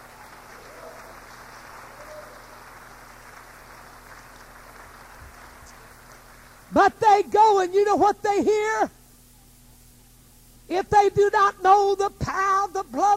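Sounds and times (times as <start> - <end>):
audience clapping hands: 0.0 - 6.7
speech: 6.7 - 9.0, 10.7 - 13.1.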